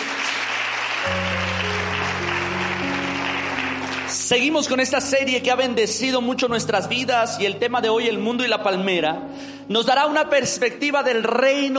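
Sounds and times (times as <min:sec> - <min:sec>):
audience applause: 0:00.0 - 0:04.8
speech: 0:04.3 - 0:11.7.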